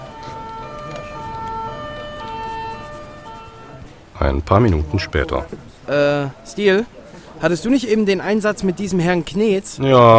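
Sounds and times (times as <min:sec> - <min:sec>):
two-tone police patrol car siren: 0:00.0 - 0:03.9
traffic rumbling: 0:00.0 - 0:06.6
speech: 0:04.2 - 0:10.1.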